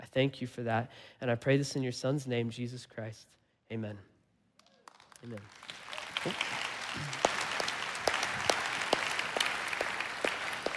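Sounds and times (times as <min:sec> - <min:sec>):
speech: 0:00.2 - 0:04.1, 0:05.2 - 0:07.3
audience applause: 0:04.8 - 0:10.7.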